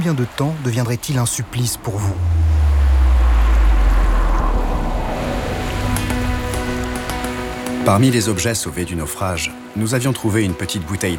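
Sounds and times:
speech: 0.0 - 2.4, 7.9 - 11.1
ocean surf breaking on the shore: 0.0 - 7.9.

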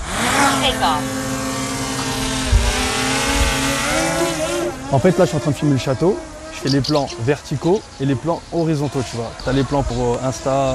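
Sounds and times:
small drone taking off: 0.0 - 6.7
speech: 0.6 - 1.2, 4.9 - 10.7.

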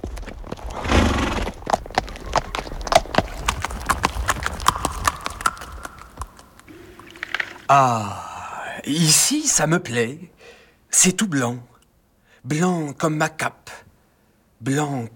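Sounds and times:
horse hooves clip-clopping: 0.0 - 7.7
speech: 7.7 - 8.2, 8.8 - 11.7, 12.4 - 13.8, 14.6 - 15.1.

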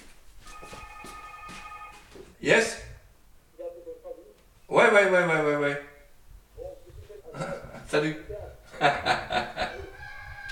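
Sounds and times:
telephone ringing: 0.4 - 2.2
speech: 2.4 - 2.8, 4.9 - 5.8
laughter: 8.7 - 10.0.

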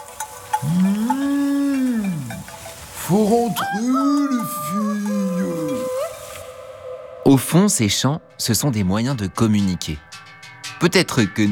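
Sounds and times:
cow mooing: 0.6 - 2.5, 3.8 - 6.2
speech: 3.1 - 5.4, 7.3 - 10.1, 10.8 - 11.5.

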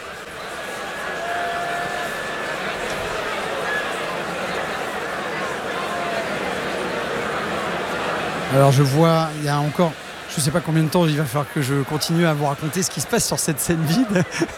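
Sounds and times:
large festival crowd murmuring and chattering: 0.0 - 14.5
thin high whistles from festival crowd: 0.1 - 5.8
laughter: 0.5 - 8.4, 11.7 - 14.5
speech: 8.5 - 14.5.

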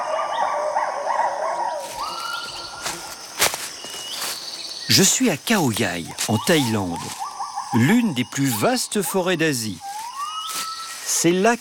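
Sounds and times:
lar gibbons calling: 0.0 - 3.0, 4.9 - 11.5
speech: 4.9 - 9.9, 11.2 - 11.5.

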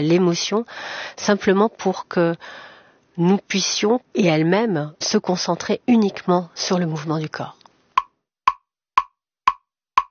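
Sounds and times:
speech: 0.0 - 7.6
metronome ticking accompanying a dance piece: 8.0 - 10.1.

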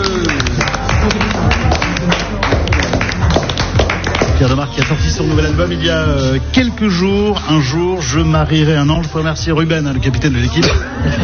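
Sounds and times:
audience applauding: 0.0 - 5.1
speech: 5.6 - 11.2.

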